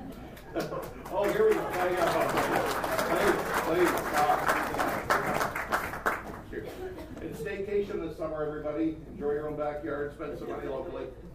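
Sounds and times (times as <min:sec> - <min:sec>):
staff member clapping at the back of the room: 0:00.0 - 0:06.5
room noise: 0:00.0 - 0:11.3
speech: 0:00.6 - 0:04.5, 0:07.4 - 0:11.3.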